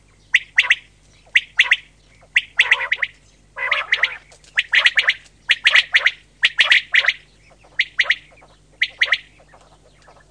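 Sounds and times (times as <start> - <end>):
common quail giving short sharp notes: 0.0 - 10.2.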